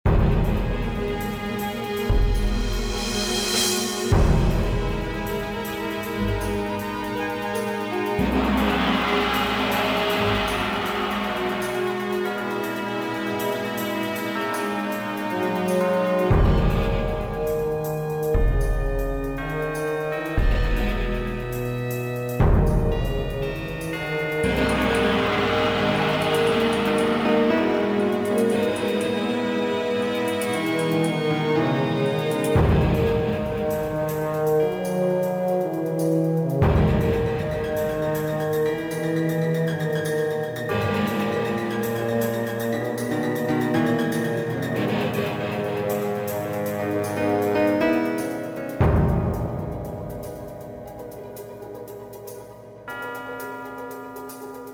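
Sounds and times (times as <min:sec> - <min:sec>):
fast music: 0:00.1 - 0:54.7.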